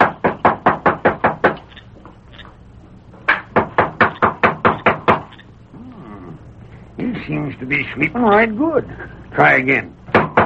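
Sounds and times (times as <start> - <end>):
knocking on a door: 0.0 - 1.6, 3.3 - 5.3, 10.1 - 10.4
speech: 7.3 - 10.0.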